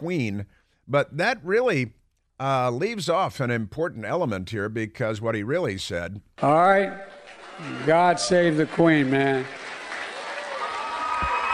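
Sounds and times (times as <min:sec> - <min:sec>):
speech: 0:00.0 - 0:09.6
crowd cheering: 0:07.0 - 0:11.5.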